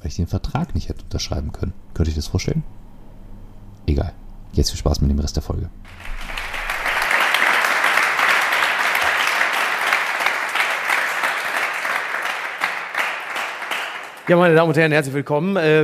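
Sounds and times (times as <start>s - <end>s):
speech: 0.1s - 2.8s, 3.9s - 6.2s, 14.3s - 15.8s
applause: 5.9s - 14.8s.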